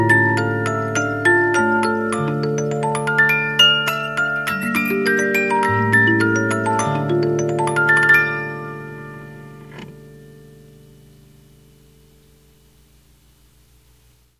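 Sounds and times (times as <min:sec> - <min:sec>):
music box with 50-note movement: 0:00.0 - 0:10.8.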